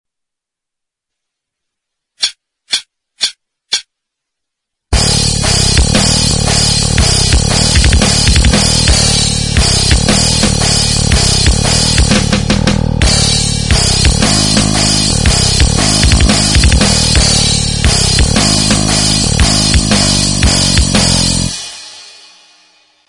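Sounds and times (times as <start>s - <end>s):
backing music: 4.9s - 22.4s.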